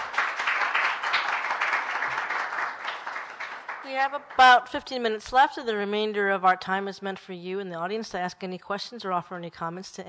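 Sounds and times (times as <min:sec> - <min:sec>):
audience applause: 0:00.0 - 0:04.4
speech: 0:03.9 - 0:10.0.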